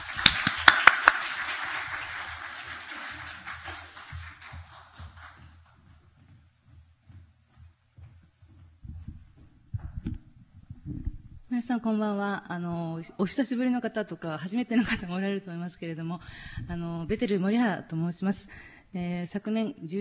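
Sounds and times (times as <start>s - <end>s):
audience applause welcoming speaker: 0.0s - 5.9s
speech: 11.6s - 19.9s.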